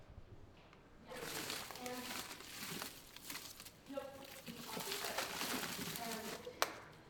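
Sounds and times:
plant rustling: 1.1s - 6.9s.

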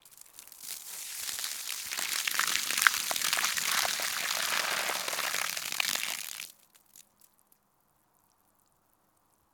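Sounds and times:
garden hose: 0.0s - 7.0s.

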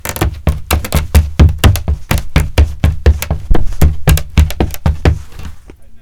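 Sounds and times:
running on wooden floorboards: 0.0s - 5.8s.

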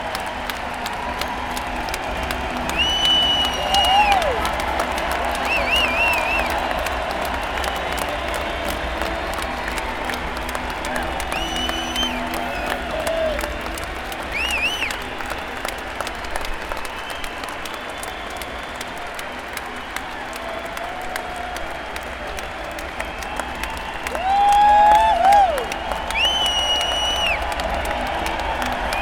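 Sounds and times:
hockey arena pregame crowd applauding: 0.0s - 29.0s.

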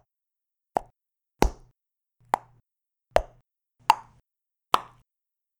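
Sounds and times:
bubble pop UI and game sounds: 0.8s - 2.6s, 3.2s - 5.0s.

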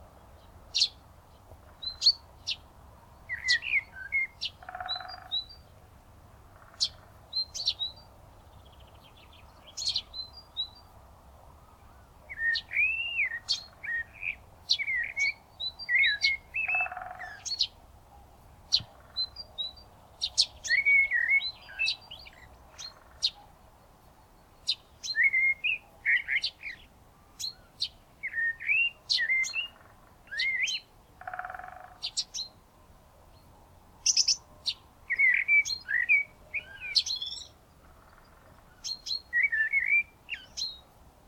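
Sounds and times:
birds on a spring morning: 0.0s - 41.2s
woodpecker on a spring morning: 4.6s - 5.5s, 16.0s - 17.7s, 29.2s - 32.5s, 35.2s - 40.7s.

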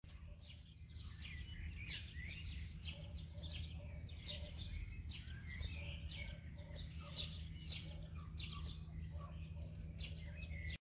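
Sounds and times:
birds singing in a garden in Varna: 0.0s - 10.7s.

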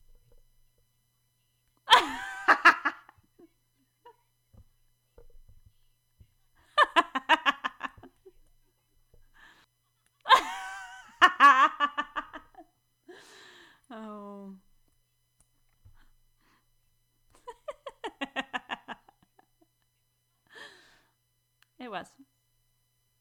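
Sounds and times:
person laughing: 1.9s - 4.2s, 6.6s - 8.4s, 10.3s - 12.6s, 17.4s - 19.5s.

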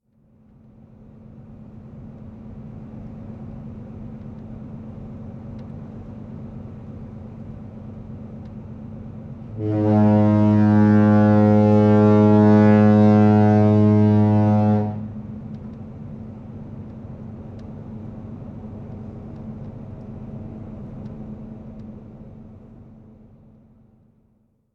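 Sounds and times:
Oslofjord ship stern foghorn: 9.5s - 15.2s.

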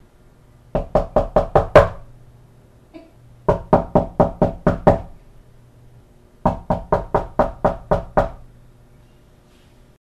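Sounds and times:
knocking on a door: 0.7s - 2.1s, 3.5s - 5.2s, 6.4s - 8.4s.

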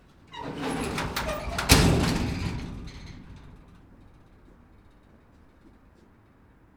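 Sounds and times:
garage door closing: 0.1s - 5.1s.

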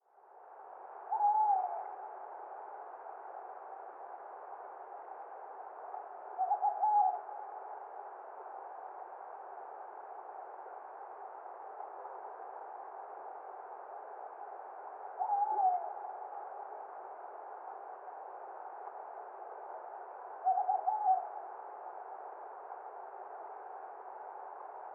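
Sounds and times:
tawny owl hooting: 1.1s - 2.0s, 6.4s - 7.3s, 15.2s - 16.1s, 20.4s - 21.4s.

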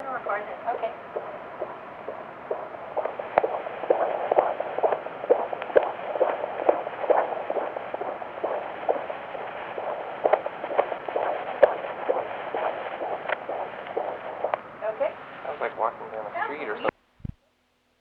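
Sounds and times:
ultrasound fetal heartbeat on microcassette: 0.0s - 16.7s.

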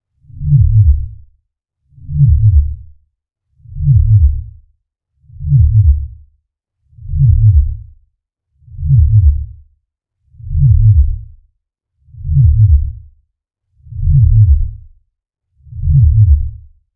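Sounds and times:
synthetic heartbeat: 0.4s - 1.2s, 2.1s - 2.9s, 3.8s - 4.5s, 5.4s - 6.2s, 7.1s - 7.8s, 8.8s - 9.6s, 10.5s - 11.3s, 12.3s - 13.0s, 14.0s - 14.8s, 15.8s - 16.6s.

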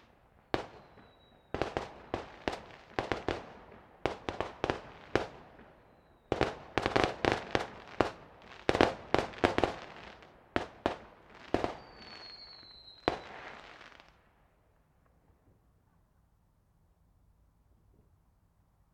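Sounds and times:
multistage whistling fireworks: 0.0s - 14.2s.

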